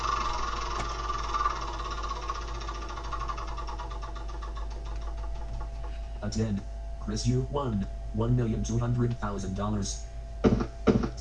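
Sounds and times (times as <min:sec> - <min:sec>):
board game spinner being spun: 0:00.0 - 0:06.1
low steady hum: 0:00.0 - 0:11.1
speech: 0:06.2 - 0:10.1.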